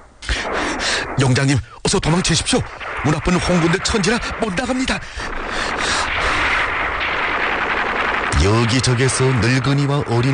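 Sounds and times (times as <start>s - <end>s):
speech: 0.9s - 6.1s, 8.4s - 10.3s
heavy gunfire: 2.6s - 10.3s.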